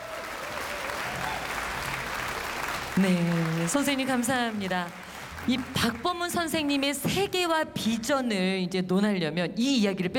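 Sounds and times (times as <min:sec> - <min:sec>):
audience applause welcoming a guest: 0:00.0 - 0:07.0
speech: 0:03.0 - 0:10.1.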